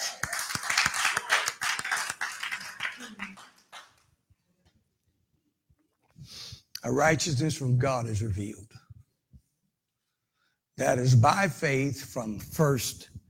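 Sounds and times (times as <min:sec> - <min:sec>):
audience clapping: 0:00.0 - 0:04.1
speech: 0:06.9 - 0:08.7, 0:10.8 - 0:13.1.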